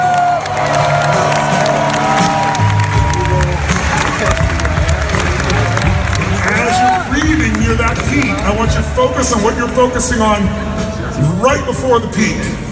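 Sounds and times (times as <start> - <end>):
audience applause: 0.0 - 9.0
speech: 9.2 - 10.8, 11.4 - 12.6.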